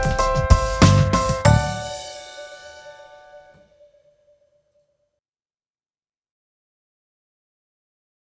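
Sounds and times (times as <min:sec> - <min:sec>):
instrumental music: 0:00.0 - 0:03.8.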